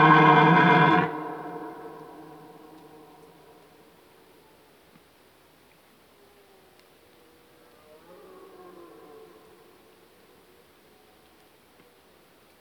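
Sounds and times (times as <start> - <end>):
red deer stag roaring: 0.0 - 3.1.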